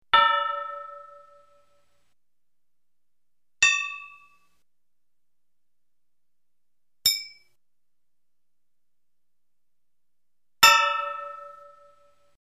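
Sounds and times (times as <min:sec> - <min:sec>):
hammer hitting metal anvil: 0:00.2 - 0:01.7, 0:03.6 - 0:04.5, 0:07.1 - 0:07.6, 0:10.6 - 0:12.2.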